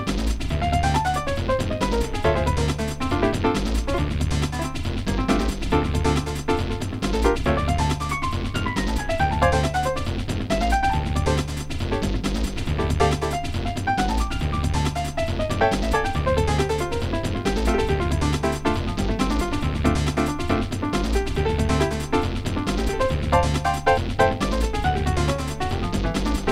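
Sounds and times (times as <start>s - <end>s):
acid jazz music: 0.0s - 26.5s.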